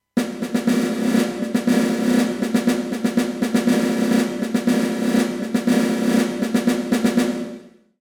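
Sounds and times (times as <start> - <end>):
snare drum: 0.2 - 7.8.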